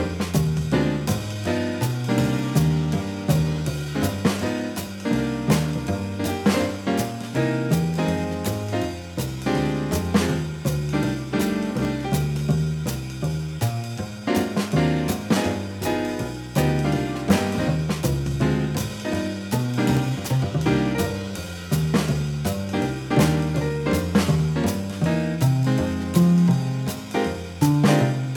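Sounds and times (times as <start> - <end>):
jazz improvisation backing track: 0.0 - 28.3.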